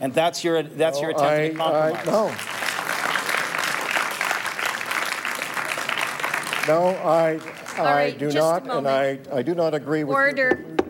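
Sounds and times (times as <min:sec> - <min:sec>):
speech: 0:00.0 - 0:02.6, 0:06.6 - 0:10.8
audience applause in a council chamber: 0:01.2 - 0:08.3.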